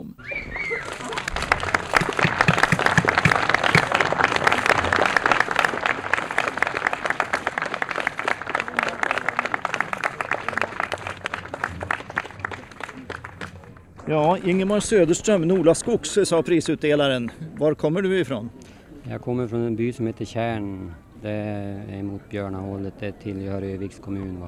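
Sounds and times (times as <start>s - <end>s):
audience applause: 0.0s - 24.4s
laughter: 0.0s - 24.4s
speech: 14.1s - 24.4s.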